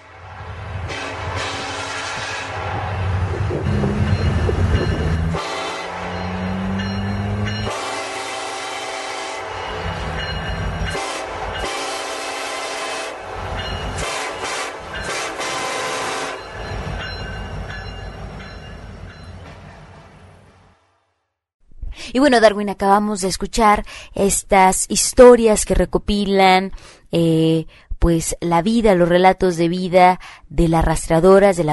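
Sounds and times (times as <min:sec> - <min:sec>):
train rumbling past: 0:00.0 - 0:21.2
speech: 0:22.1 - 0:31.7.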